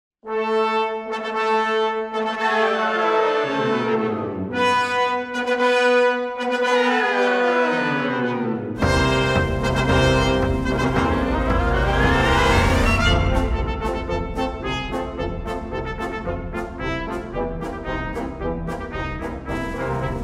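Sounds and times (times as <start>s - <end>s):
piano: 0.4s - 20.2s.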